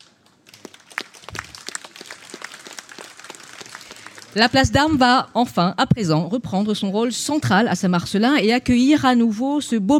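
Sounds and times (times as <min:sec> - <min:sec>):
audience applause: 0:00.4 - 0:04.5
speech: 0:04.4 - 0:09.9.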